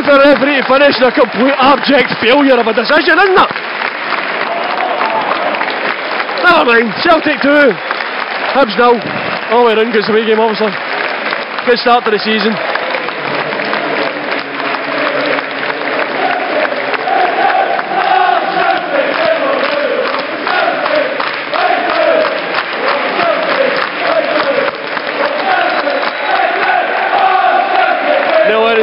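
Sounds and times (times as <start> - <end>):
large football crowd clapping and cheering: 0.0 - 28.8
speech: 0.1 - 4.2, 6.5 - 10.9, 11.6 - 12.7
raised voices: 12.6 - 28.8.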